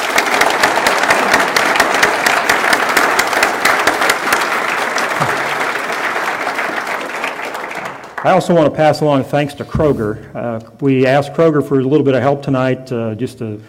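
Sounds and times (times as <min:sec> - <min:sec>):
audience applause: 0:00.0 - 0:08.9
speech: 0:08.2 - 0:13.6.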